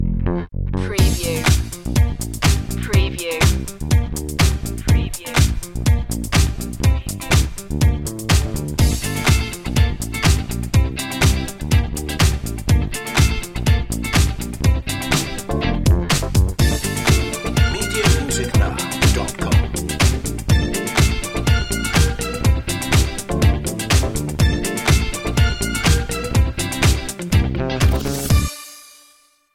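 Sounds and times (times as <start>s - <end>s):
groovy chic music: 0.0s - 29.2s.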